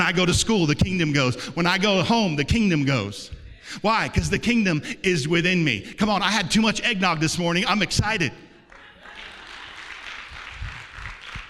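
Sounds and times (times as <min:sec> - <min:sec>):
speech: 0:00.1 - 0:08.4
audience clapping: 0:08.6 - 0:11.4.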